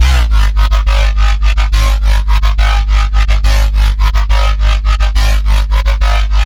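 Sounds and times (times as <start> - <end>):
dubstep bassline in C3 at 140 bpm: 0.0 - 6.4.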